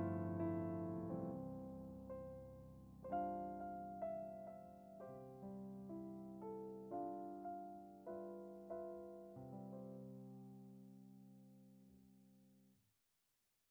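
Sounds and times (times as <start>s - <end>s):
instrumental music: 0.0s - 10.7s.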